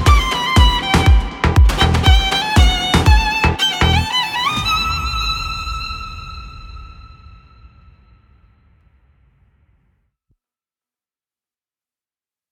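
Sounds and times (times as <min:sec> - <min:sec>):
violin cover: 0:00.0 - 0:07.6.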